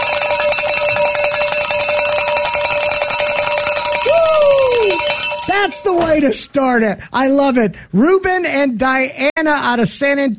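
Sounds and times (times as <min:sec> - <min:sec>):
hand bell ringing: 0:00.0 - 0:06.3
speech: 0:05.6 - 0:10.3.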